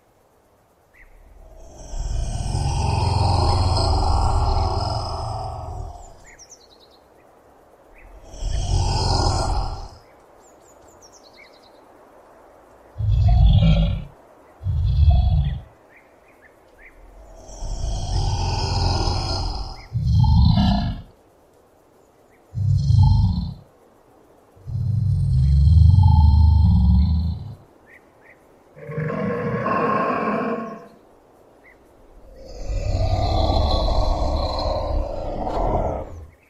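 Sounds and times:
Komodo dragon: 0:01.2 - 0:06.3, 0:07.9 - 0:10.0, 0:13.0 - 0:15.8, 0:17.0 - 0:21.2, 0:22.5 - 0:23.7, 0:24.6 - 0:27.7, 0:28.8 - 0:31.0, 0:32.1 - 0:36.4.

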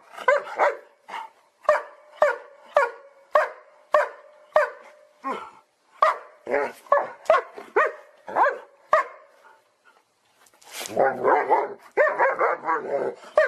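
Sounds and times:
happy dog barking: 0:00.3 - 0:05.0, 0:06.0 - 0:09.3, 0:11.1 - 0:13.4.

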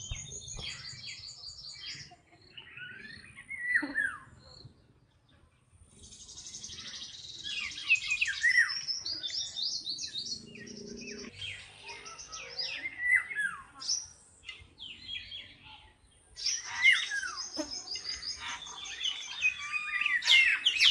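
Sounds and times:
bird song: 0:00.0 - 0:20.9.

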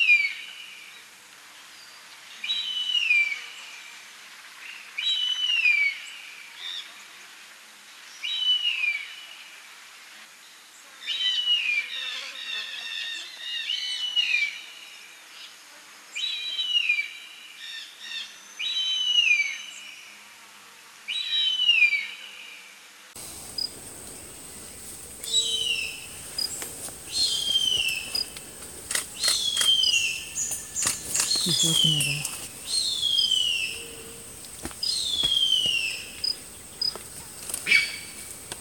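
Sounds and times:
steady noise: 0:00.0 - 0:38.5
bird whistling song: 0:25.2 - 0:28.3, 0:29.1 - 0:34.2, 0:34.8 - 0:36.9
speech: 0:31.6 - 0:32.3.

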